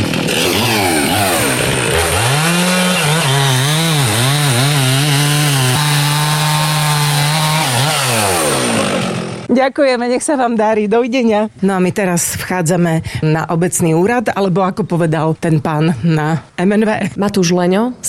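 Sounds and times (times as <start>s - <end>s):
chainsaw running: 0.0s - 9.5s
speech: 9.6s - 18.0s.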